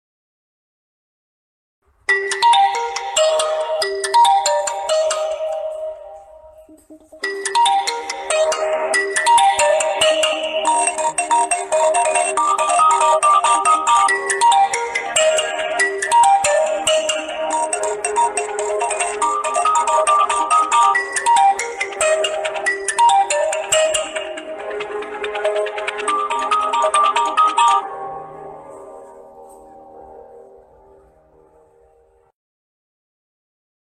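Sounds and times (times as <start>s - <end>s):
phone ringtone: 2.1s - 28.8s.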